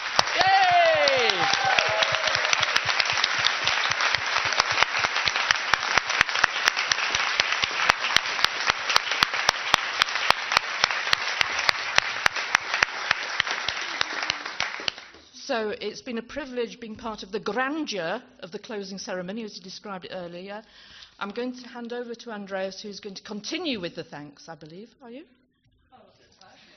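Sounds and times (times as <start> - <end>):
audience applause: 0.0 - 15.2
speech: 15.6 - 25.4.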